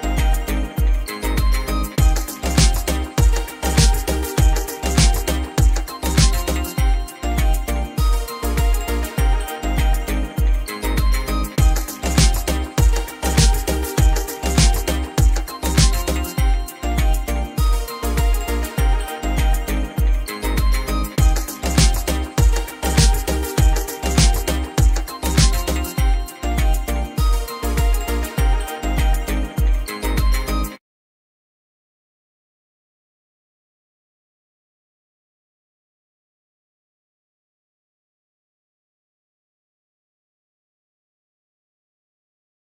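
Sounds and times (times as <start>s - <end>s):
tropical beat: 0.0s - 30.8s.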